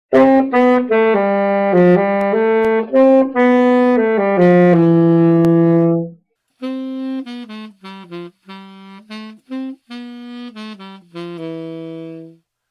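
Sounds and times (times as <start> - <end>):
saxophone: 0.1 - 12.5.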